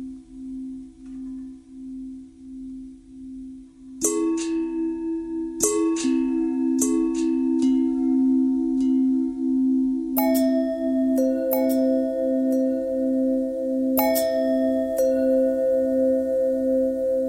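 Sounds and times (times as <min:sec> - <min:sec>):
long bell ringing: 0:04.1 - 0:17.2.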